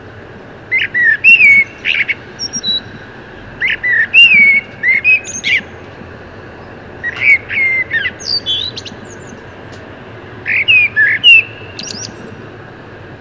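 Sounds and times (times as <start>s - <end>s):
common blackbird song: 0.7s - 12.6s.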